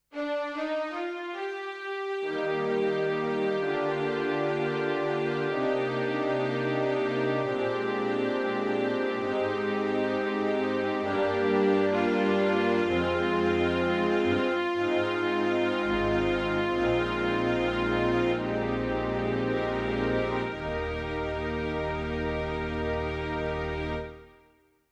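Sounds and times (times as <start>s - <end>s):
strings: 0.1s - 24.5s.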